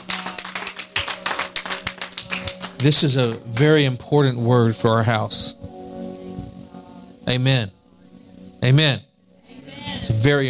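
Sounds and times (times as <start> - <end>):
audience clapping hands: 0.0 - 4.0
speech: 2.8 - 5.8, 7.3 - 7.8, 8.6 - 9.1, 10.2 - 10.4.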